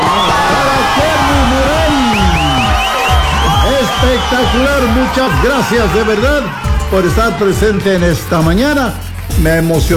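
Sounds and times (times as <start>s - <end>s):
cheering and rising whoops: 0.0s - 8.0s
loud audience applause: 0.0s - 8.2s
speech: 4.2s - 9.9s.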